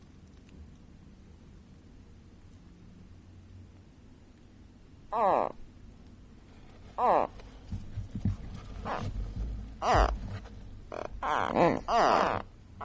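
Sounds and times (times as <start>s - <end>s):
gharial calls: 5.1s - 5.6s, 7.0s - 7.4s, 8.8s - 9.1s, 9.8s - 10.2s, 10.9s - 12.8s.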